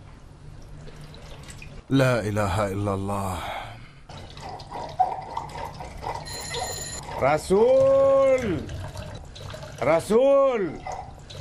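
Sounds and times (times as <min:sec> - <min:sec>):
speech: 0:01.9 - 0:03.5, 0:07.2 - 0:08.8, 0:09.8 - 0:10.9
doorbell ringing: 0:06.3 - 0:07.0.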